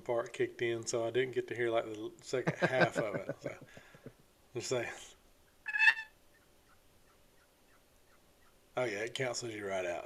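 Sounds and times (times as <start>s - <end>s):
speech: 0.1s - 3.8s, 4.5s - 5.2s, 8.8s - 10.0s
laughter: 2.4s - 4.1s
turkey yelp made on a box call: 5.4s - 8.6s.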